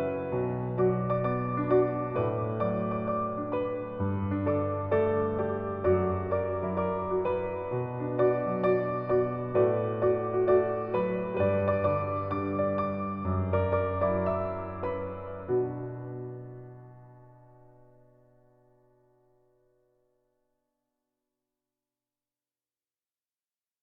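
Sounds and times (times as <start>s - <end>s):
piano ballad: 0.0s - 18.9s.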